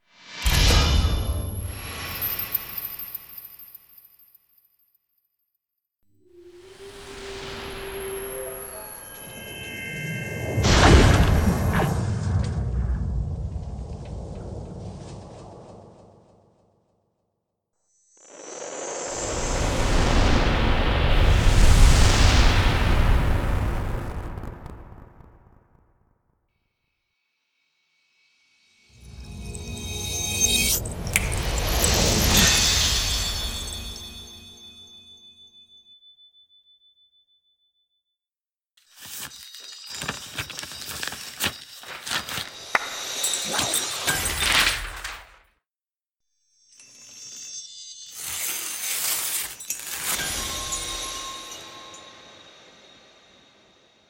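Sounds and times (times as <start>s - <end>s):
magic spell casting: 0.4s - 3.4s, 6.2s - 16.2s, 18.7s - 25.5s, 29.0s - 35.2s, 42.0s - 45.3s, 48.1s - 54.0s.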